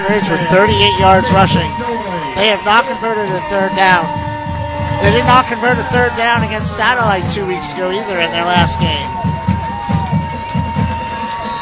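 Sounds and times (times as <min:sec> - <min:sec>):
speech: 0:00.0 - 0:04.2, 0:05.0 - 0:09.3
crowd roar at a high school football game between Flagler County and Pine Ridge: 0:00.0 - 0:11.6.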